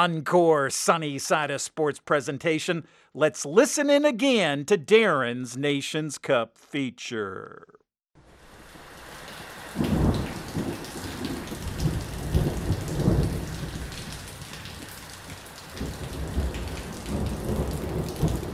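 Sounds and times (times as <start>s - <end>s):
speech: 0.0s - 7.8s
rain hammering the corrugated iron roof of a small house: 8.2s - 18.5s
thunderstorm east of Johannesburg: 9.7s - 18.5s.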